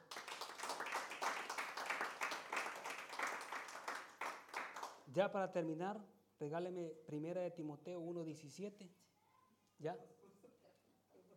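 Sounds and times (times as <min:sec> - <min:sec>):
audience applause: 0:00.0 - 0:05.0
speech: 0:05.1 - 0:09.0, 0:09.8 - 0:10.2.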